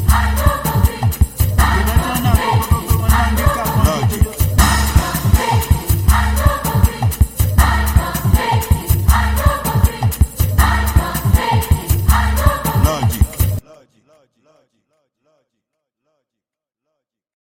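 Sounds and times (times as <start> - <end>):
music beat: 0.0 - 13.6.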